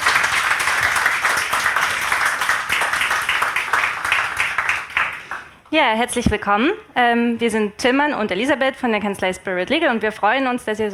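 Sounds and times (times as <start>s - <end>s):
audience applause: 0.0s - 5.5s
speech: 5.7s - 10.9s.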